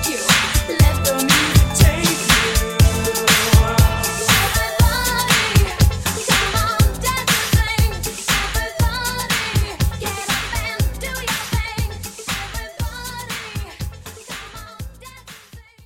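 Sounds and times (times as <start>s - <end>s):
80s hype drum beat at 120: 0.0s - 14.6s.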